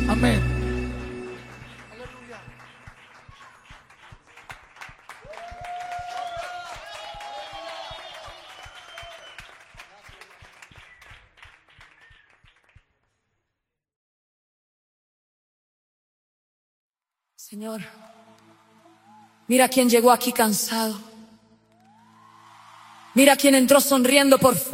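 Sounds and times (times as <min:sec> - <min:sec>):
speech: 0:00.2 - 0:00.5, 0:17.5 - 0:18.0, 0:19.5 - 0:21.1, 0:23.2 - 0:24.7
audience clapping: 0:01.0 - 0:13.4, 0:17.6 - 0:20.0, 0:21.7 - 0:24.1
voices cheering: 0:01.5 - 0:11.0, 0:18.0 - 0:19.5, 0:21.7 - 0:23.7.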